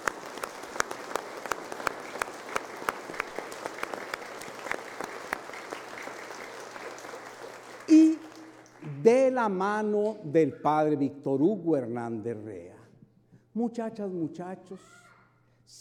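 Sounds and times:
parish community applauding: 0.0s - 9.2s
speech: 9.0s - 12.8s, 13.6s - 15.0s.

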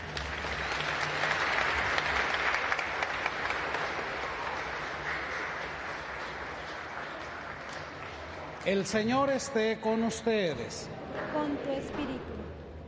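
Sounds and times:
audience applause: 0.0s - 9.1s
speech: 8.7s - 12.4s.

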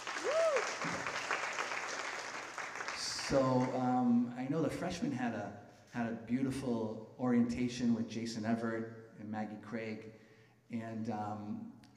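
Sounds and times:
applause from freshmen in an audience: 0.0s - 3.8s
speech: 3.3s - 11.7s.

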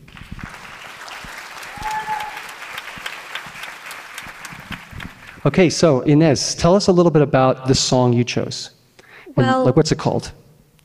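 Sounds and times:
audience applause welcoming a singer to the stage: 0.0s - 5.6s
speech: 5.4s - 8.8s, 9.4s - 10.4s.

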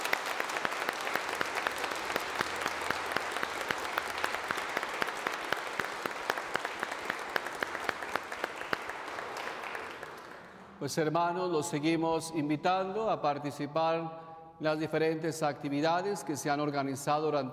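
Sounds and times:
audience applause: 0.0s - 10.8s
speech: 10.8s - 17.5s.

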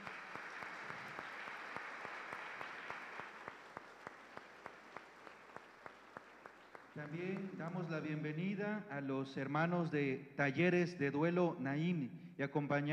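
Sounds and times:
applause: 0.0s - 8.2s
speech: 7.0s - 12.9s.

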